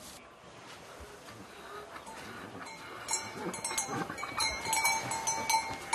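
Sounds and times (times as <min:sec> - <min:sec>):
mules shuffling and knocking in a stable: 0:00.7 - 0:05.9
thin ringing tone: 0:02.6 - 0:05.9.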